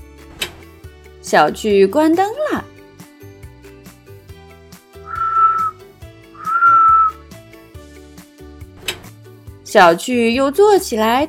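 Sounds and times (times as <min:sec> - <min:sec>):
soft music: 0:00.0 - 0:11.2
speech: 0:01.3 - 0:02.7, 0:09.7 - 0:11.2
person whistling a tune: 0:05.1 - 0:05.8, 0:06.4 - 0:07.2.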